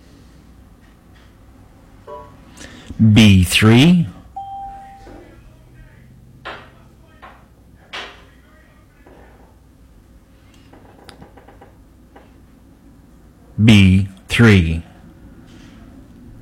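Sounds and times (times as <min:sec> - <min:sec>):
speech: 0:03.0 - 0:04.2, 0:14.4 - 0:14.7
phone ringing: 0:04.4 - 0:05.1.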